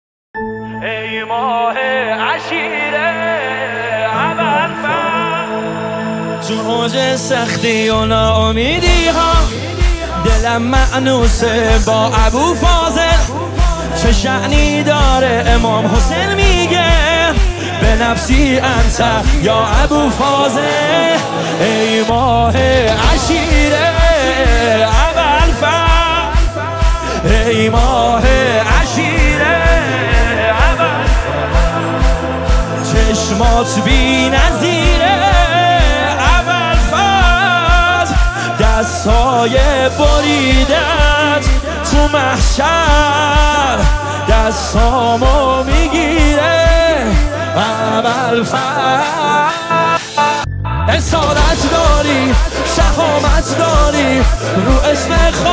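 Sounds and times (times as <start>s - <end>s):
studio Persian religious eulogy chanting: 0.4s - 55.5s.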